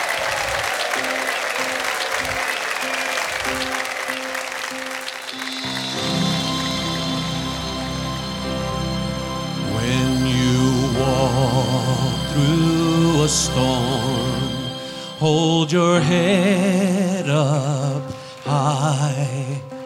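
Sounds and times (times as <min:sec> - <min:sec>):
audience applause: 0:00.0 - 0:10.9
orchestral music: 0:00.8 - 0:19.2.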